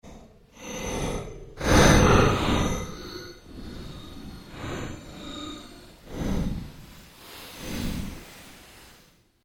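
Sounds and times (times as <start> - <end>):
fluctuating ambience made by manipulating other sounds: 0.1 - 9.2.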